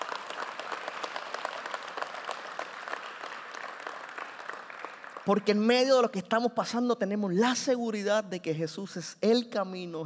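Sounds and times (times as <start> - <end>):
audience applause: 0.0 - 5.4
speech: 5.3 - 10.0.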